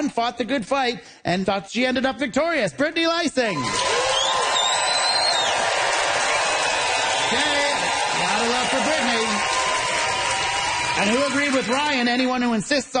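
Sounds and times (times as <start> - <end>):
speech: 0.0 - 4.2, 7.3 - 7.6, 11.0 - 12.9
audience applause vote: 3.6 - 12.3.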